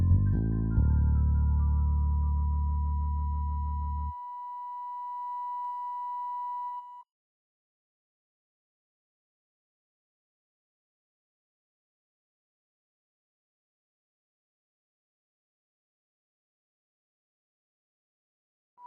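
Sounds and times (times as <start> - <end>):
sine wave tone: 0.9 - 7.1.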